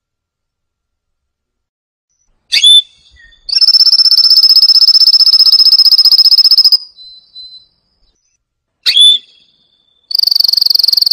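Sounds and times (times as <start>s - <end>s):
canary trilling: 2.5s - 7.6s, 8.9s - 11.1s.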